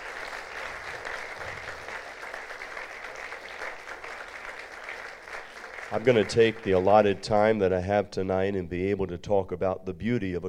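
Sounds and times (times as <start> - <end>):
audience applause: 0.0 - 7.5
speech: 5.9 - 10.4.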